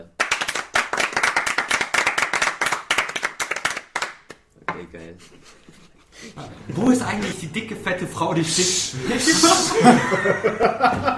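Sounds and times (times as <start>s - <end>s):
group clapping in unison: 0.0s - 4.5s
speech: 4.9s - 11.1s
laughter: 5.1s - 7.6s, 8.6s - 11.1s.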